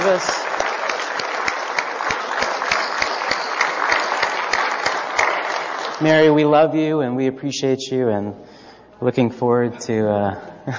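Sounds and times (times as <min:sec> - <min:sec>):
audience applauding: 0:00.0 - 0:06.4
speech: 0:00.1 - 0:00.4, 0:06.0 - 0:10.7.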